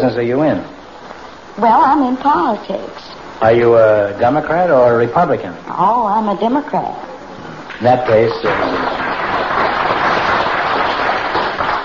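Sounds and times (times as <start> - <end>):
speech: 0.0 - 0.8, 1.6 - 7.1, 7.8 - 9.0
audience applause: 8.0 - 11.8.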